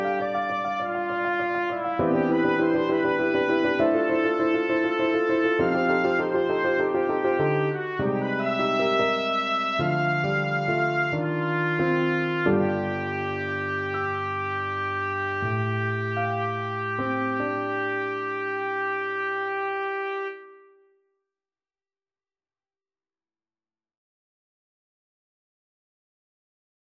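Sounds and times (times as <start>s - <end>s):
trumpet: 0.0s - 20.8s.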